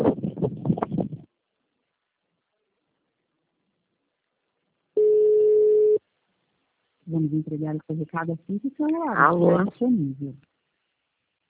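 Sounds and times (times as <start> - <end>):
voicemail recording beep on a phone line: 5.0 - 6.0
speech: 7.2 - 10.5.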